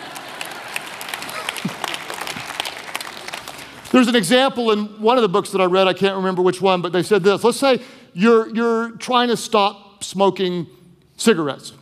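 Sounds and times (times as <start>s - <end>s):
clapping: 0.0s - 3.9s
speech: 3.9s - 11.8s.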